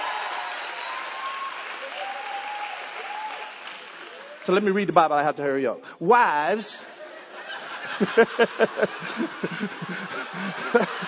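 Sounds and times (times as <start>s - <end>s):
audience applause and hand clapping: 0.0s - 4.6s, 7.9s - 11.0s
speech: 4.5s - 7.0s, 8.0s - 11.0s
laughter: 6.8s - 11.0s.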